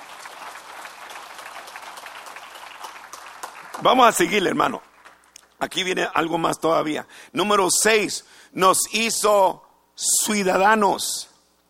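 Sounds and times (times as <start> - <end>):
crowd clapping: 0.0 - 6.0
speech: 3.8 - 4.9, 5.6 - 11.3.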